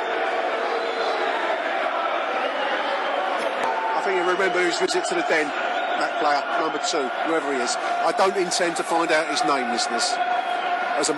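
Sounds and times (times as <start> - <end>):
Millwall football crowd jeering in derision: 0.0 - 11.1
speech: 4.3 - 11.1.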